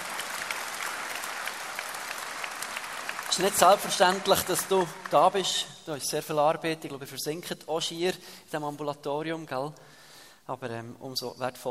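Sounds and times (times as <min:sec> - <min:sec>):
audience applause welcoming a guest at a seminar: 0:00.0 - 0:05.8
speech: 0:03.3 - 0:11.6.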